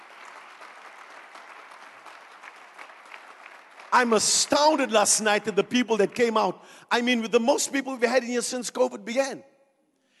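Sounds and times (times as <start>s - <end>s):
audience clapping hands: 0.0s - 6.5s
speech: 3.9s - 9.5s.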